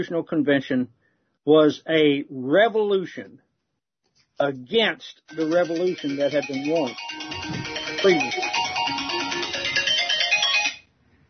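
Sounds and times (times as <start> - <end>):
speech: 0.0 - 3.4, 4.4 - 8.4
mobile phone ringtone: 5.3 - 10.9.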